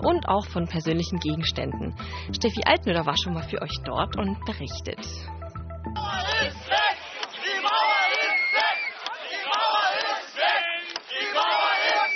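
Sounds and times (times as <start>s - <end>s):
speech: 0.0s - 5.4s
recorded crowd from the fall of the Berlin Wall shouting and cheering: 6.0s - 12.1s.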